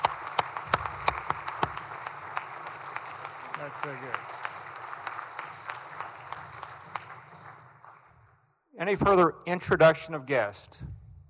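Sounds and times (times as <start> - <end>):
applause welcoming university student athletes and coaches: 0.0 - 8.3
speech: 3.7 - 4.4, 8.8 - 11.0.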